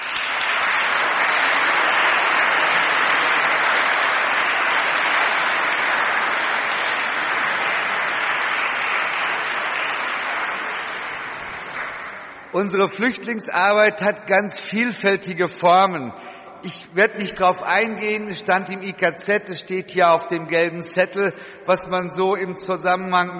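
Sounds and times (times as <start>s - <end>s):
crowd applause: 0.0s - 13.2s
speech: 12.6s - 23.3s.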